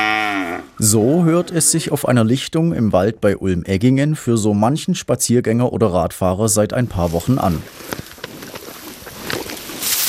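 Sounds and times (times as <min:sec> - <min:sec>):
speech: 0:00.8 - 0:08.0
breezy rustle: 0:06.8 - 0:10.0
zebu cattle munching contentedly: 0:07.1 - 0:10.0.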